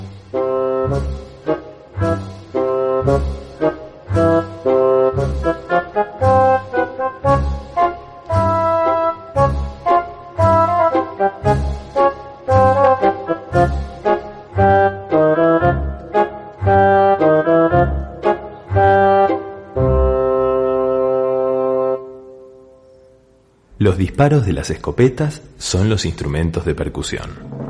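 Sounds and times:
woodwind instruments playing: 0:00.3 - 0:22.7
speech: 0:24.2 - 0:27.5.

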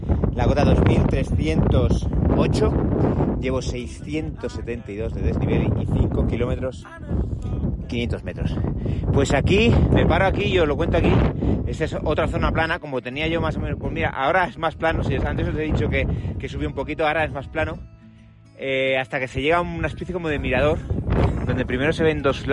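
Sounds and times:
strong wind on mountain summit: 0:00.0 - 0:18.4, 0:19.3 - 0:22.5
speech: 0:00.4 - 0:17.9, 0:18.6 - 0:22.5.

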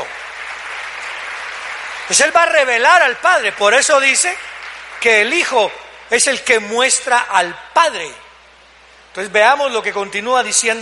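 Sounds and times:
audience applauding loudly: 0:00.0 - 0:06.1
speech: 0:02.1 - 0:08.2, 0:09.2 - 0:10.8.

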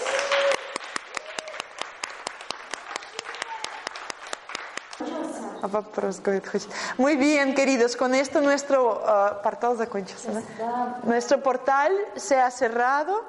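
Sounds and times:
rhythmic applause: 0:00.0 - 0:05.1
speech: 0:05.6 - 0:13.2.

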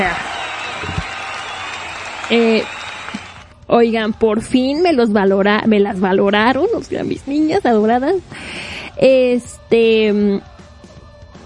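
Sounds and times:
speech: 0:00.0 - 0:00.3, 0:02.3 - 0:02.8, 0:03.7 - 0:10.5
audience applause: 0:00.0 - 0:03.5.

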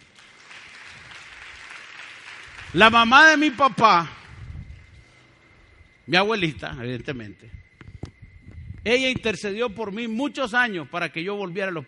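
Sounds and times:
audience applause: 0:00.0 - 0:03.8
speech: 0:02.7 - 0:04.2, 0:06.1 - 0:07.6, 0:08.8 - 0:11.8.

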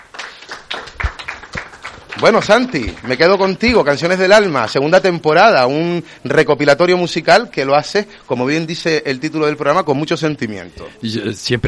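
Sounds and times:
audience applause: 0:00.0 - 0:03.8
speech: 0:02.2 - 0:11.6.

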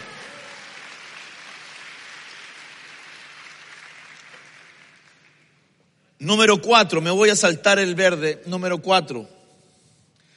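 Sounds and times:
audience clapping: 0:00.0 - 0:05.9
speech: 0:06.2 - 0:09.4.

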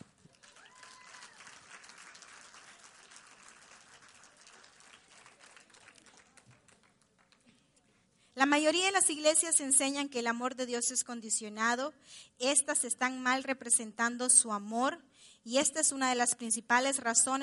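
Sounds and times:
audience applause: 0:00.0 - 0:07.5
speech: 0:08.4 - 0:17.4.

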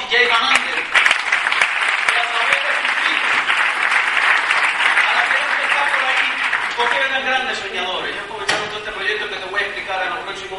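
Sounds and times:
applause: 0:00.0 - 0:07.2
speech: 0:07.0 - 0:10.5.

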